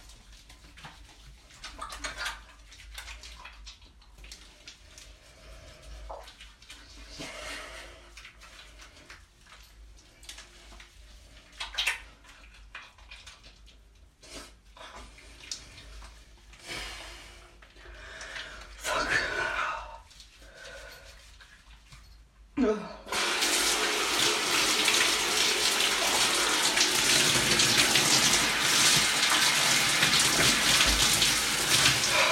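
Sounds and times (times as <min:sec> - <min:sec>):
cold shower water running: 0:00.0 - 0:22.4, 0:23.1 - 0:32.2
person moaning: 0:22.6 - 0:23.1.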